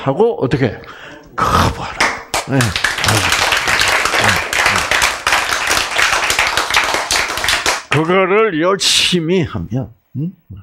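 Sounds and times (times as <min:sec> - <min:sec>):
speech: 0:00.0 - 0:03.4, 0:08.0 - 0:10.6
crowd clapping: 0:01.8 - 0:08.2.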